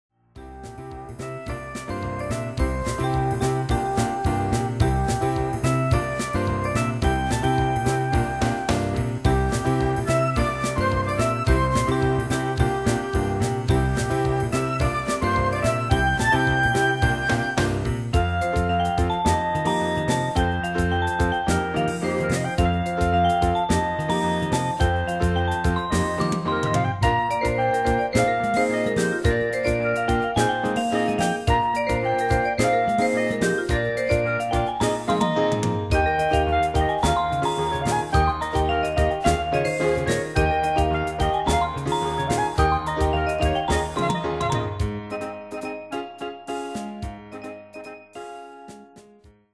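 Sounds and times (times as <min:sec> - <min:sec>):
upbeat music: 0:00.4 - 0:49.2.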